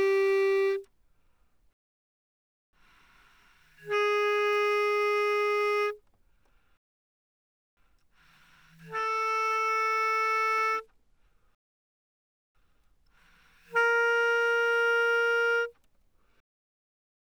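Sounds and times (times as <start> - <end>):
bass clarinet notes played mezzo forte: 0.0 - 0.8, 3.9 - 6.0, 8.8 - 10.9, 13.7 - 15.8.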